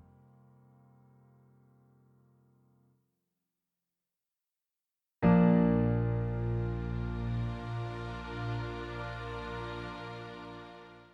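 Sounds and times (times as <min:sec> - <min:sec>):
instrumental music: 0:05.3 - 0:11.1.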